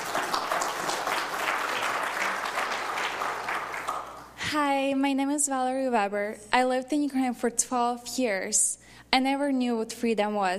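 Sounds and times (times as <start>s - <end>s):
audience applause welcoming a speaker: 0.0s - 4.4s
speech: 4.5s - 10.5s.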